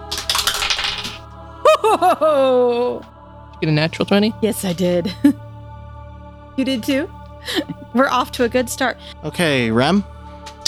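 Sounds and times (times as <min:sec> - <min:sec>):
dice clattering and tumbling across a table: 0:00.1 - 0:01.2
laughter: 0:01.6 - 0:03.1
speech: 0:01.9 - 0:05.4, 0:06.6 - 0:10.1.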